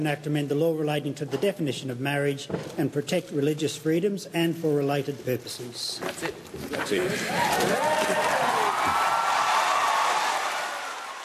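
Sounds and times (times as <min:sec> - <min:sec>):
speech: 0:00.0 - 0:08.3
applause and cheering in parliament after marriage bill passed: 0:07.1 - 0:11.2
whoops: 0:07.2 - 0:11.2.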